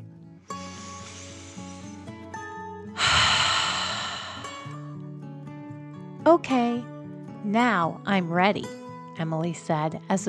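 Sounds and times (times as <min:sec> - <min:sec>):
deep dragon breath in and out: 0:00.5 - 0:02.1, 0:03.0 - 0:04.8
speech: 0:06.3 - 0:06.9, 0:07.5 - 0:10.2.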